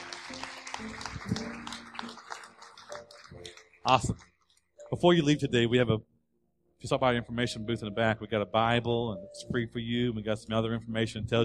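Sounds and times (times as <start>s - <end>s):
scattered applause from a church congregation: 0.0s - 4.3s
speech: 3.9s - 4.3s, 4.9s - 6.1s, 6.8s - 11.4s.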